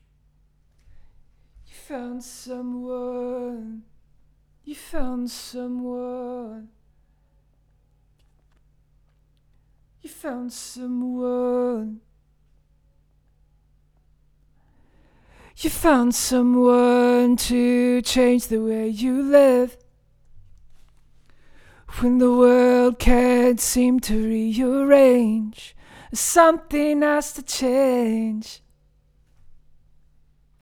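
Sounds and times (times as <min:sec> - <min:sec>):
vocals: 0:01.5 - 0:07.6, 0:10.0 - 0:12.6, 0:14.6 - 0:20.2, 0:21.3 - 0:28.8.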